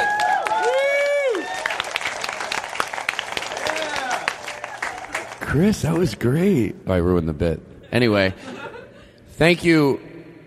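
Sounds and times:
audience applause and cheering: 0.0 - 6.0
speech: 5.5 - 8.5, 9.4 - 10.1.

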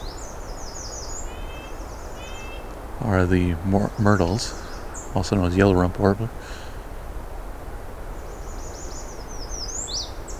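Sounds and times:
American redstart song: 0.0 - 6.8, 8.0 - 10.3
speech: 3.0 - 4.6, 5.2 - 6.6.

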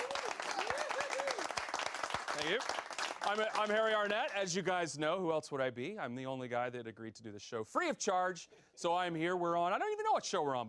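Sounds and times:
audience applause: 0.0 - 4.3
speech: 2.4 - 10.6.

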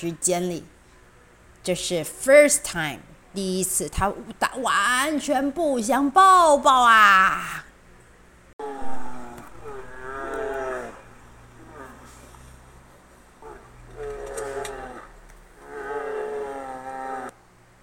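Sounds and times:
speech: 0.0 - 0.7, 1.6 - 7.7
voice imitating a bear's low angry growl: 8.6 - 12.2, 13.4 - 17.4.

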